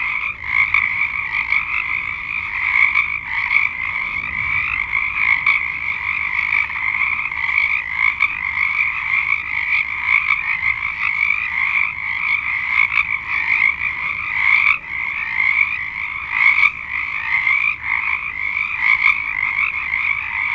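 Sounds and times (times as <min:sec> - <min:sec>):
frog chorus of high trilled notes: 0:00.0 - 0:20.5.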